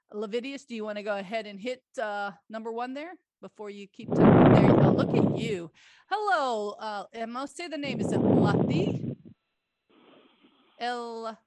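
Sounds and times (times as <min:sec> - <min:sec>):
speech: 0:00.1 - 0:09.1, 0:10.8 - 0:11.4
person breathing into the microphone: 0:05.7 - 0:06.1, 0:08.1 - 0:10.8.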